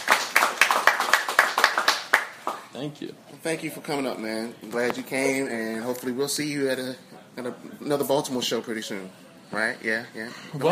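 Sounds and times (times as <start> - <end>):
audience applause at the end of a live show in Baltimore: 0.0 - 2.7
speech: 2.8 - 10.7.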